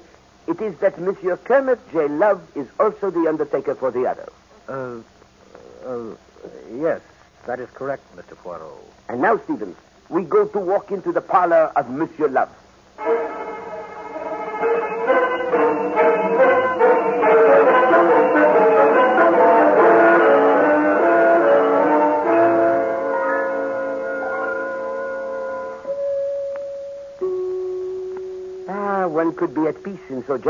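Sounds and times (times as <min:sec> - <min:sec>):
speech: 0:00.5 - 0:05.1, 0:05.8 - 0:13.2, 0:29.4 - 0:30.4
doorbell chimes: 0:14.4 - 0:30.1.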